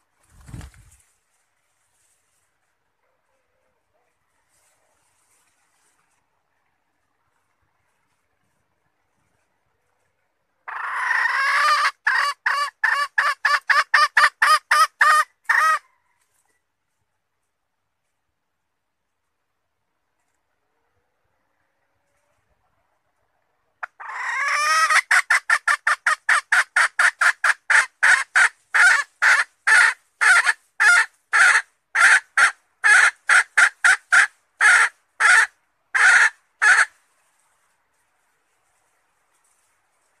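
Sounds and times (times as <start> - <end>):
red junglefowl hen cackling: 10.6 - 16.0, 21.8 - 37.0.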